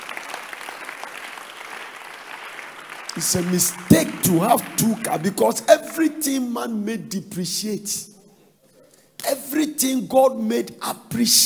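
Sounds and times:
audience applause: 0.0s - 6.2s
speech: 3.2s - 8.2s, 9.8s - 11.4s.

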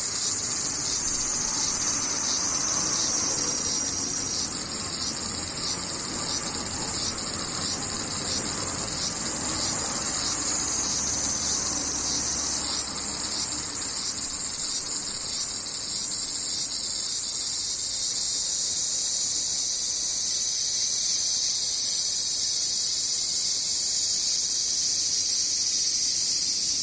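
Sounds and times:
cicadas droning: 0.0s - 26.8s.

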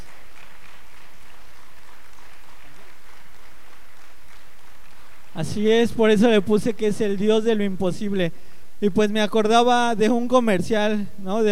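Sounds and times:
crowd clapping: 0.0s - 6.2s
speech: 5.4s - 11.5s.

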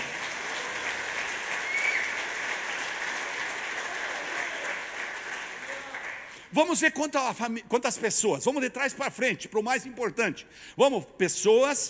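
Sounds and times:
audience applause: 0.0s - 6.4s
speech: 6.5s - 11.8s.

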